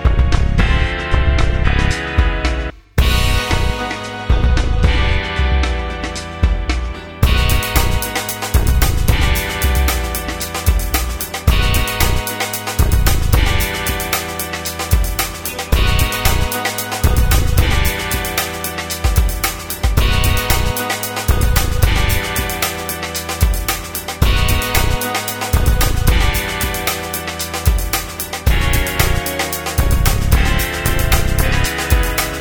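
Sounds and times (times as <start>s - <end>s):
background drums: 0.0s - 32.4s.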